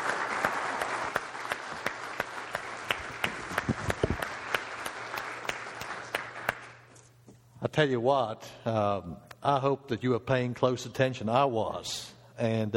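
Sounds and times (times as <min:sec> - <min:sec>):
audience applause: 0:00.0 - 0:06.9
speech: 0:07.8 - 0:12.7.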